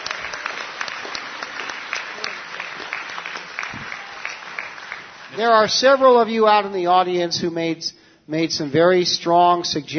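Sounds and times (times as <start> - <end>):
audience applause at an organization's meeting after a committee report: 0.0 - 6.2
speech: 5.4 - 9.9.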